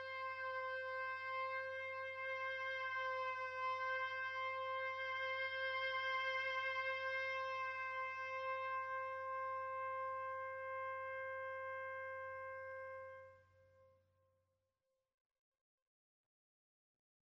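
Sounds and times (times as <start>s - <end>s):
oboe solo: 0.0s - 13.6s.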